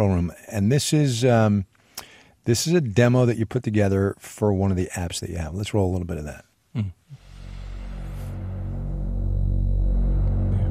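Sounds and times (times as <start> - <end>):
speech: 0.0 - 1.7, 2.4 - 7.0
Moog synthesizer drone: 7.1 - 10.7.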